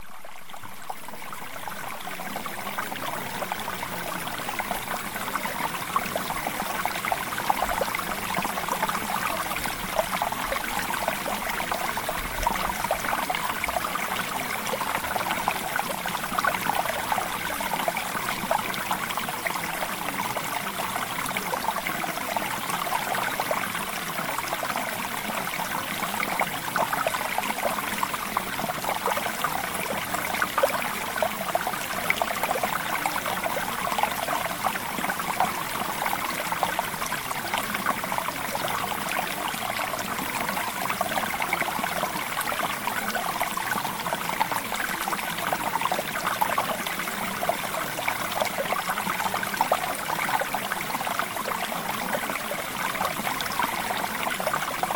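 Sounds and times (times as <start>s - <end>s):
mountain stream: 0.0s - 54.9s.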